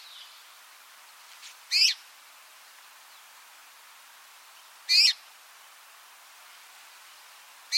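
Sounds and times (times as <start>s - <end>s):
soft background hiss: 0.0s - 7.7s
red-rumped rosefinch buzzy call: 1.7s - 2.0s, 4.9s - 5.2s.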